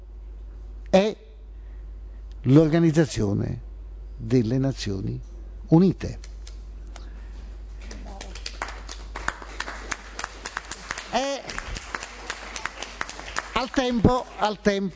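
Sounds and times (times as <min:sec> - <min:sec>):
speech: 0:00.9 - 0:01.2, 0:02.4 - 0:03.6, 0:04.2 - 0:06.3, 0:13.8 - 0:14.9
audience applause: 0:07.9 - 0:14.7
person calling out: 0:11.1 - 0:11.5.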